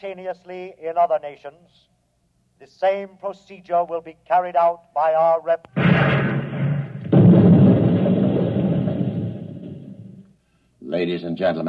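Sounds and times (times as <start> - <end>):
speech: 0.0 - 2.0, 2.6 - 6.7, 10.9 - 11.6
dense noisy bed of sound: 5.7 - 10.2
volley of explosive bullets fired by ten honor guard soldiers: 5.7 - 10.2.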